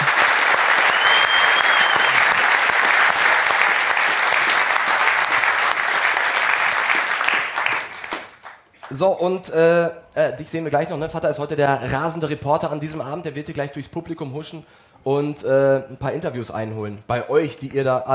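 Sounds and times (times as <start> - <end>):
audience applause: 0.0 - 9.0
speech: 9.0 - 18.1.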